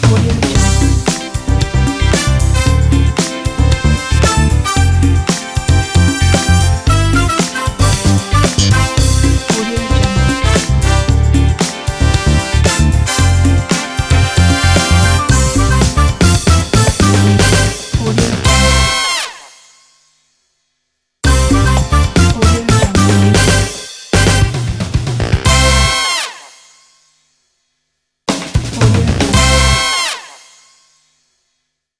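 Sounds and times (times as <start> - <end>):
show opener: 0.1 - 19.4, 21.2 - 26.4, 29.4 - 30.2.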